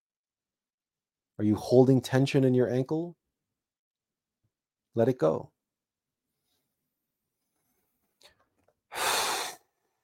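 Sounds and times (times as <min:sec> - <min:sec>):
speech: 0:01.4 - 0:03.2, 0:05.0 - 0:05.6
person breathing in through the nose and out through the mouth: 0:08.9 - 0:09.9.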